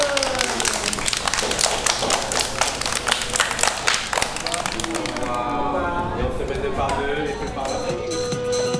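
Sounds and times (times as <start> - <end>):
children applauding: 0.0 - 8.7
laughter: 0.0 - 8.7.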